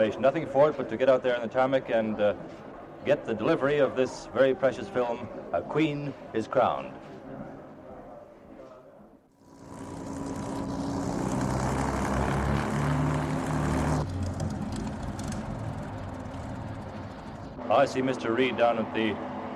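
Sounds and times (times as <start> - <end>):
speech: 0.0 - 7.1, 17.7 - 19.3
North Star propeller aircraft arriving from Montreal at an airport gate: 9.4 - 17.7.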